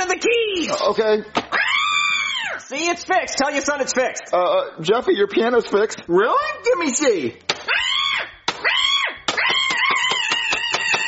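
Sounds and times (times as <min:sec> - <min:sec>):
speech: 0:00.2 - 0:01.4, 0:02.7 - 0:07.5
cat yowling as it is squeezed: 0:07.7 - 0:11.0.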